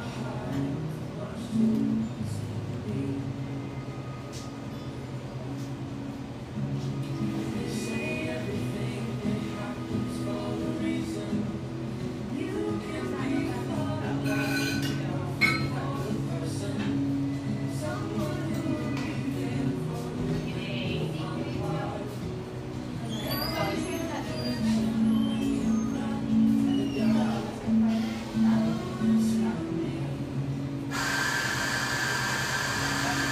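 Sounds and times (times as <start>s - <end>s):
overlapping voices in a drip coffee joint in eastern Seattle: 0.0s - 33.3s
dishes clinking: 14.2s - 15.9s.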